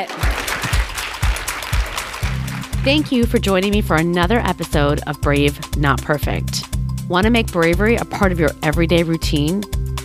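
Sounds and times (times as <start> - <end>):
speech: 0.0 - 0.4, 2.8 - 9.8
audience applause: 0.0 - 3.0.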